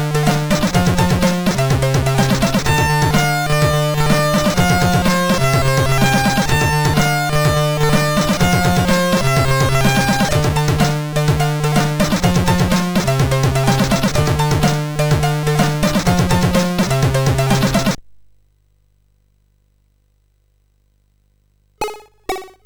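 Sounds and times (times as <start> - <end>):
rap music on MOS6581R3 SID sound chip: 0.0 - 18.0, 21.8 - 22.6.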